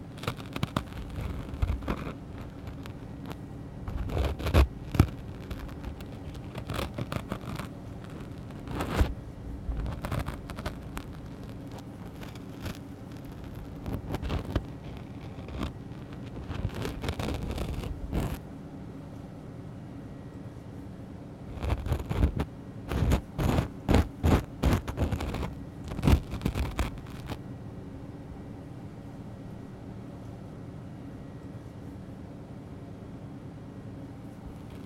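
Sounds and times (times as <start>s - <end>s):
ear cleaning on left side: 0.1s - 18.4s, 21.5s - 27.4s.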